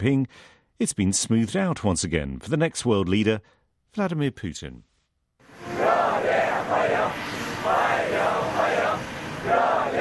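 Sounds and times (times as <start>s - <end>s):
speech: 0.0s - 4.9s
crowd of young people chanting in unison to welcome Vladimir Putin in Beijing: 5.5s - 9.9s.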